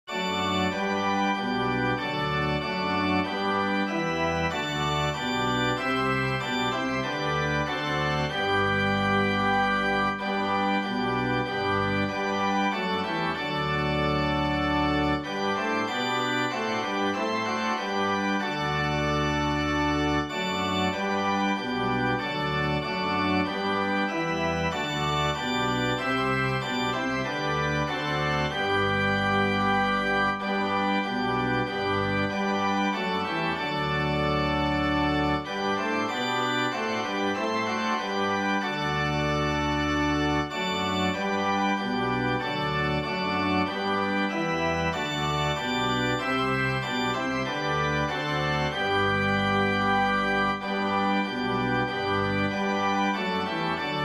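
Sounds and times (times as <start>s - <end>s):
organ playing a hymn: 0.0s - 54.0s.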